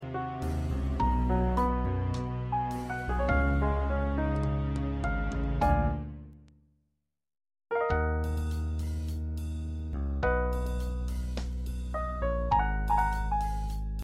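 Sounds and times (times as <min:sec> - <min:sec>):
musical accompaniment: 0:00.0 - 0:06.4, 0:07.8 - 0:14.0.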